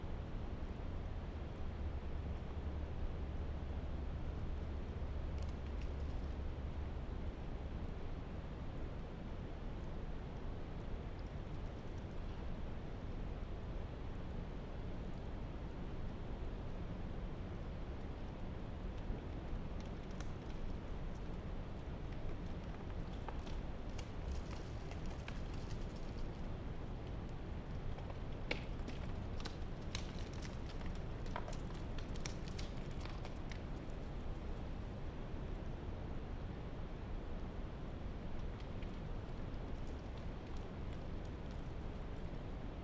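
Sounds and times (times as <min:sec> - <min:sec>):
mountainside air rumble in the Mt Baker-Snoqualmie Wilderness: 0:00.0 - 0:42.8.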